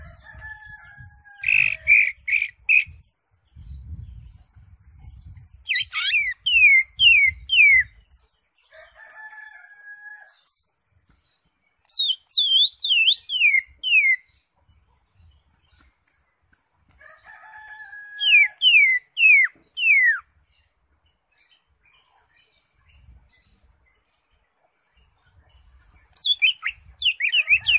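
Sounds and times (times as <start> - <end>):
Greater Green Leafbird singing varied phrases: 1.4 - 8.8, 11.2 - 16.1, 18.2 - 27.7.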